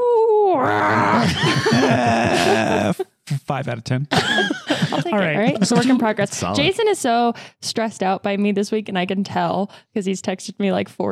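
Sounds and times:
person vocally imitating an owlbear hoot-growl: 0.4 - 3.0
speech: 0.6 - 2.9, 3.5 - 11.0
laughter: 1.0 - 3.1, 4.1 - 6.7.

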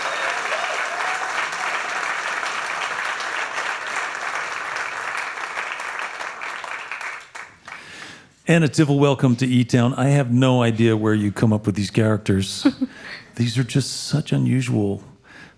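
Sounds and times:
audience applause for a band at a live music show: 0.0 - 8.0
speech: 8.5 - 15.1.

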